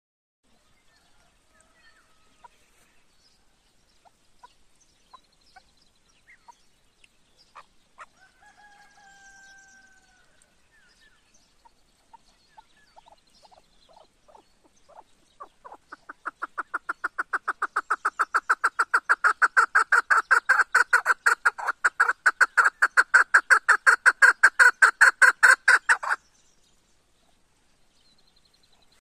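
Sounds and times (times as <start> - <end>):
female partridge calling: 7.4 - 8.2, 11.6 - 26.2.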